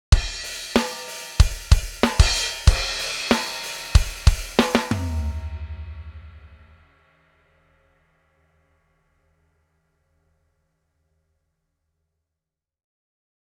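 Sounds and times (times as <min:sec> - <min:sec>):
music loop: 0:00.4 - 0:05.3.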